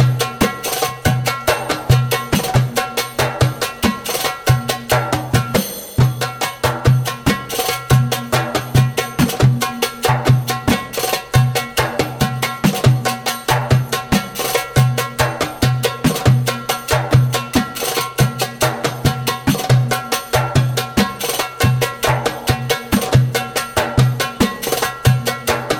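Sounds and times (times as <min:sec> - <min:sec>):
djembe drumming: 0:00.0 - 0:25.7.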